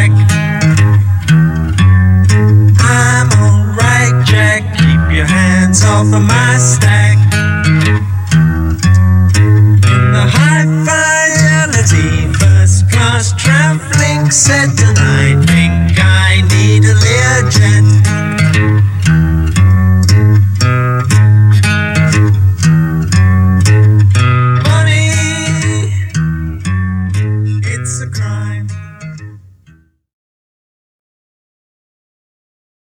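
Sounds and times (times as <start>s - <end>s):
acoustic music: 0.0s - 29.9s.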